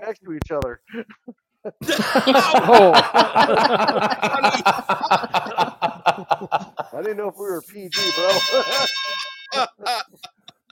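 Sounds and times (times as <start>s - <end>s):
speech: 0.1s - 5.4s, 7.0s - 10.1s
laughter: 1.7s - 10.7s
boxing bell ding: 8.0s - 9.6s.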